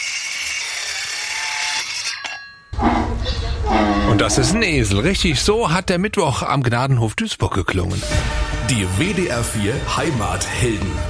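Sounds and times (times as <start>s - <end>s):
sawing: 0.0s - 5.0s
speech: 4.2s - 11.0s.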